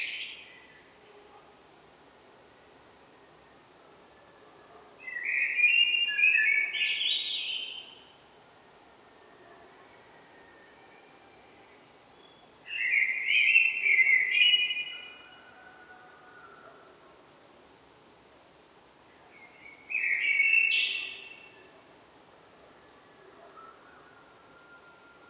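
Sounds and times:
common blackbird singing: 5.0 - 8.0, 12.3 - 15.3, 19.4 - 21.7.

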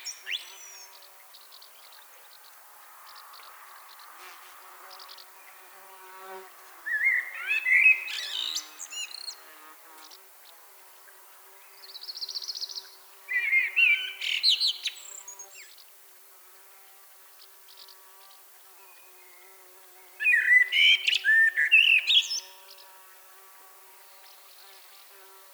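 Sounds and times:
common blackbird song of fluted whistles and twitters: 6.9 - 9.4, 12.2 - 15.7, 20.2 - 22.5.

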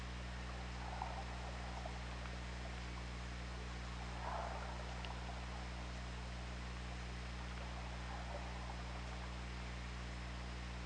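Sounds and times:
killer whale calls: 0.2 - 10.7.

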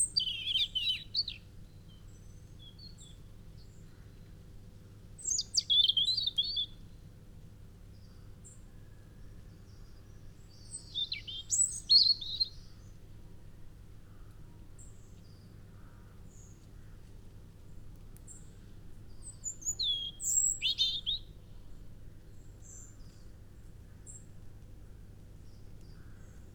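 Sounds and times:
European robin singing: 0.0 - 3.2, 5.2 - 6.8, 9.7 - 12.9, 19.1 - 21.4.

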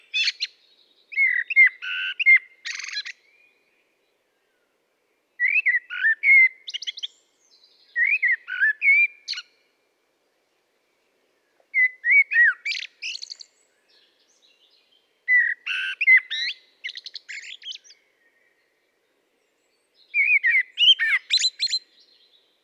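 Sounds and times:
common blackbird singing: 0.0 - 3.5, 5.4 - 9.5, 11.7 - 18.7, 20.0 - 22.4.

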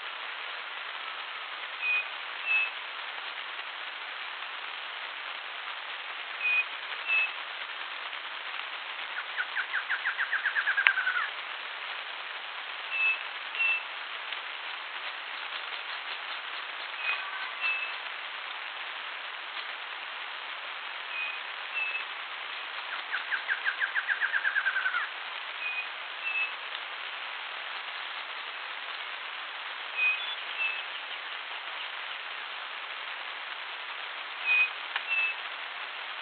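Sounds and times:
soft hiss: 0.0 - 36.2
bird whistles and falling trill: 1.8 - 2.8, 6.4 - 7.3, 9.4 - 11.2, 12.9 - 13.8, 17.0 - 18.0, 21.1 - 22.1, 23.1 - 25.0, 25.6 - 26.5, 30.0 - 30.9, 34.4 - 35.4.

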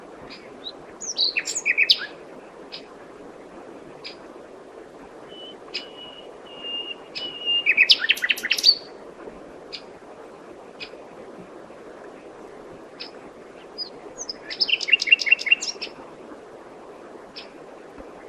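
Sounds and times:
soft hiss: 0.0 - 18.2
common nightingale song: 0.3 - 2.9, 5.3 - 8.9, 13.0 - 16.0, 17.4 - 17.6.

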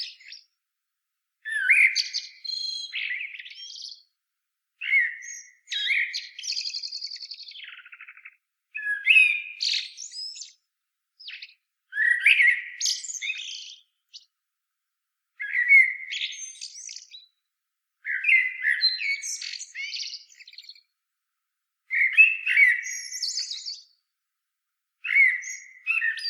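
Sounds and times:
Common blackbird fluted song: 0.0 - 0.5, 1.5 - 4.1, 4.8 - 10.6, 11.2 - 14.3, 15.4 - 17.4, 18.0 - 20.9, 21.9 - 24.0, 25.0 - 26.2.

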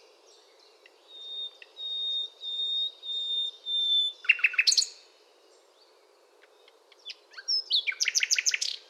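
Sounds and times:
Common nightingale singing: 0.3 - 5.0, 6.6 - 8.8.

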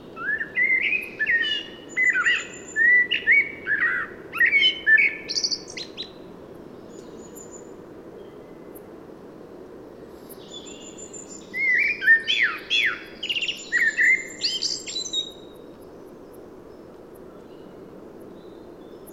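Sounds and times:
common blackbird Turdus merula singing: 0.2 - 6.1, 10.4 - 15.3.

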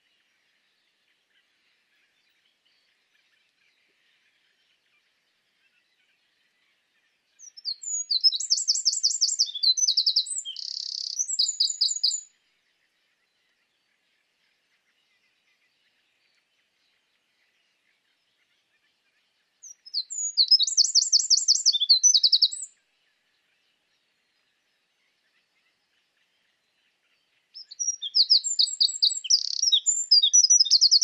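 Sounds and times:
Eurasian wren trilling song: 7.4 - 12.3, 19.6 - 22.7, 27.5 - 31.0.

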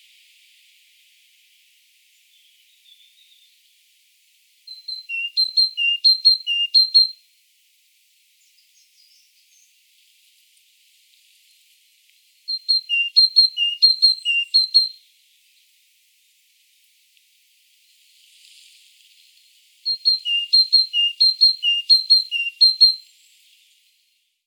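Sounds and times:
Great tit Parus major calling: 4.7 - 7.1, 12.5 - 14.9, 19.9 - 23.1.

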